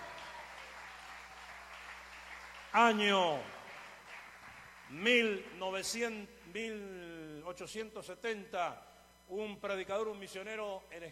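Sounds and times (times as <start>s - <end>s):
applause: 0.0s - 5.6s
speech: 2.8s - 3.6s, 4.9s - 11.0s.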